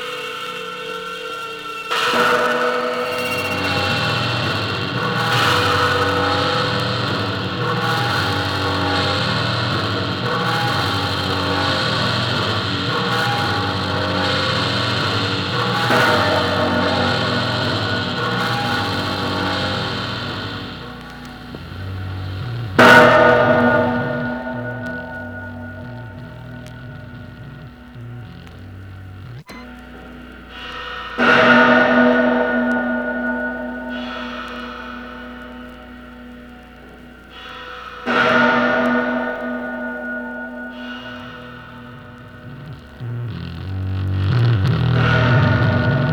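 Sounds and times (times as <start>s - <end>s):
tape loop collage: 1.9s - 46.1s.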